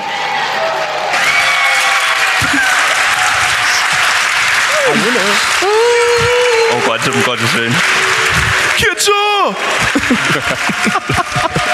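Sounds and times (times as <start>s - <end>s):
audience applause: 0.0s - 11.7s
laughter: 2.4s - 3.0s, 9.6s - 11.7s
speech: 5.0s - 5.9s, 7.0s - 8.2s, 8.8s - 11.7s.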